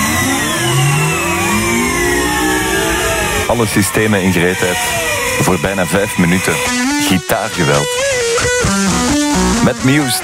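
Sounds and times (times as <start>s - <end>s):
engine-like sound effect for a supercomputer starting up: 0.0s - 10.2s
rising whining tones: 0.0s - 10.2s
speech: 3.5s - 10.2s.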